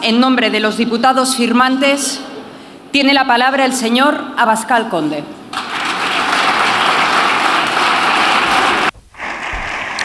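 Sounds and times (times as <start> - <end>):
speech: 0.0 - 2.3, 2.9 - 5.4
parliamentary ovation applause from a large group: 5.5 - 10.0.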